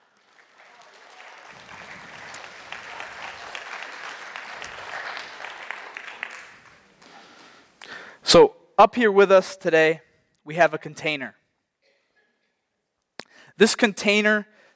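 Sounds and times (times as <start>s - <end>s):
audience clapping at a Christian gathering welcoming a volunteer: 0.0s - 8.0s
speech: 8.3s - 11.4s, 13.6s - 14.7s.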